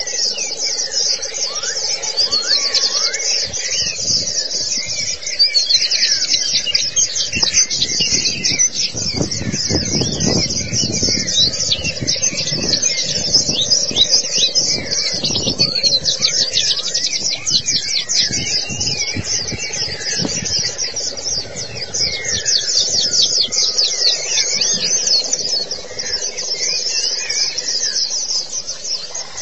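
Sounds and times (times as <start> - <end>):
white-eye twittering song: 0.0 - 29.4.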